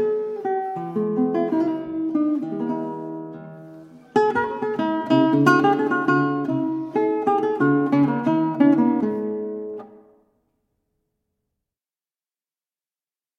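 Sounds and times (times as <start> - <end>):
classical guitar sonata in A major, Allegretto: 0.0 - 10.4.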